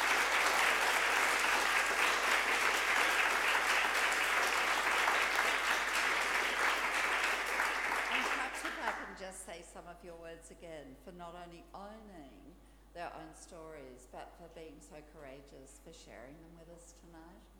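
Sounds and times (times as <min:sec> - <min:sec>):
audience applause: 0:00.0 - 0:09.1
speech: 0:09.8 - 0:17.5.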